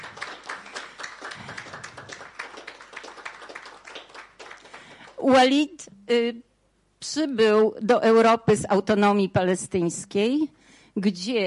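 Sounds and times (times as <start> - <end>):
audience applause: 0.0 - 5.2
speech: 5.2 - 11.4.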